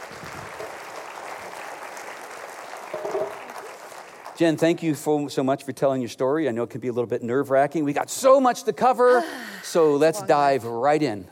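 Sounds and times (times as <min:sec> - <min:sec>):
audience applause greeting a speaker walking onto a stage: 0:00.0 - 0:05.0
speech: 0:04.4 - 0:11.3.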